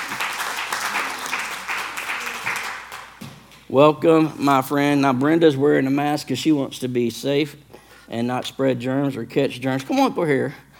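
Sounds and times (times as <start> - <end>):
audience applause for a volunteer: 0.0 - 3.2
speech: 3.7 - 10.6.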